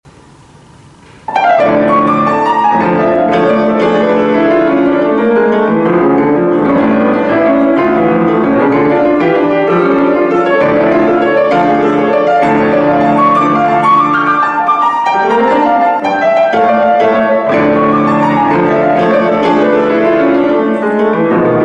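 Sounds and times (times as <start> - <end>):
fiery classical allegro in D minor: 1.3 - 21.6.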